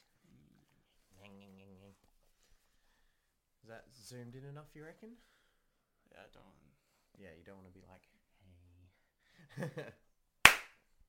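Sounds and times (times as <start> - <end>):
speech: 3.7 - 5.4, 6.1 - 8.2, 9.4 - 10.0
single hand clap for audio sync: 10.4 - 10.8.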